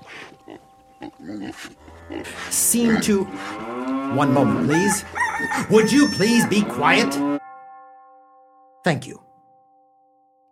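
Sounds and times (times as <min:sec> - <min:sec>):
hogs grunting and oinking in a farmyard: 0:00.0 - 0:07.3
speech: 0:00.5 - 0:07.4, 0:08.8 - 0:09.3.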